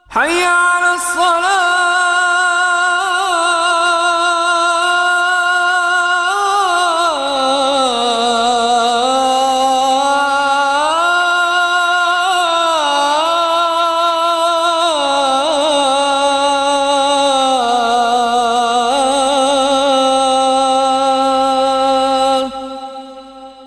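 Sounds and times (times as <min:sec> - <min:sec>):
azaan call to prayer: 0:00.0 - 0:23.6.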